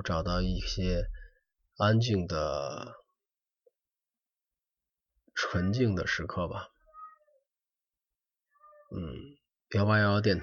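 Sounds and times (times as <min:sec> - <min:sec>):
speech: 0:00.0 - 0:01.2, 0:01.8 - 0:03.0, 0:05.4 - 0:06.7, 0:08.9 - 0:10.4
cat meowing: 0:06.9 - 0:07.4, 0:08.6 - 0:09.0.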